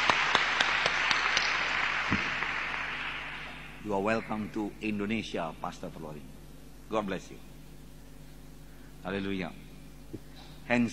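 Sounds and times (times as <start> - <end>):
audience applause: 0.0 - 3.7
speech: 3.8 - 7.5, 9.0 - 10.9.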